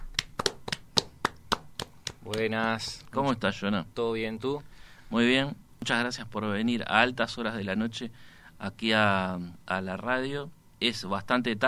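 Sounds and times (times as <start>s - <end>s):
applause for an arriving guest: 0.0s - 2.8s
speech: 2.3s - 11.6s.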